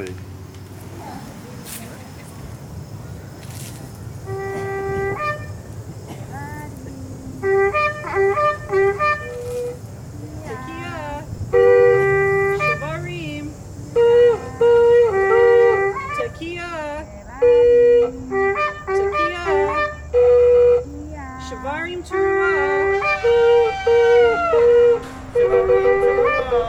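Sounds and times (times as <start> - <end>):
shofar blasts collage: 4.3 - 5.7, 7.4 - 9.9, 10.5 - 13.2, 13.9 - 16.4, 17.6 - 20.9, 22.1 - 26.6.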